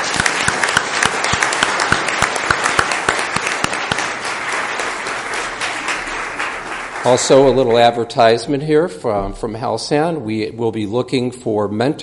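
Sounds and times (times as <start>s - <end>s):
audience applause: 0.0s - 8.0s
speech: 7.1s - 12.0s.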